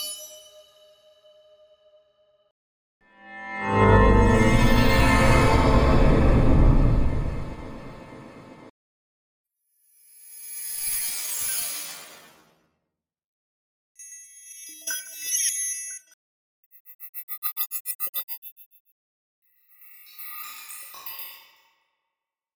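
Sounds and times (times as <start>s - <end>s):
magic spell bells: 3.5s - 8.6s.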